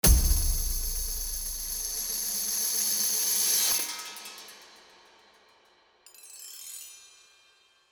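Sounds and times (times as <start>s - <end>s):
music logo: 0.0s - 2.4s.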